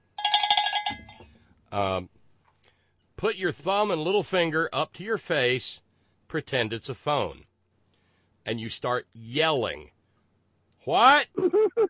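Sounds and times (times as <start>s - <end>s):
cowbell: 0.0s - 1.2s
speech: 1.7s - 2.2s, 3.2s - 7.5s, 8.4s - 10.0s, 10.8s - 11.8s.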